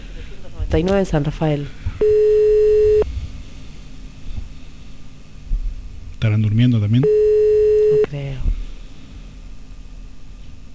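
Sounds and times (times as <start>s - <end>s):
speech: 0.7s - 2.3s, 6.2s - 7.3s, 8.1s - 8.5s
telephone line tone calling a parish church on Avenida Mitre in San Rafael, Mendoza: 2.0s - 3.0s, 7.0s - 8.1s.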